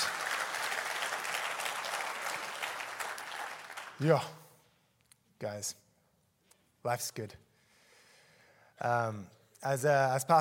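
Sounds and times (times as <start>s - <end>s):
audience applause: 0.0s - 4.1s
speech: 4.0s - 4.4s, 5.4s - 5.8s, 6.8s - 7.4s, 8.8s - 10.4s.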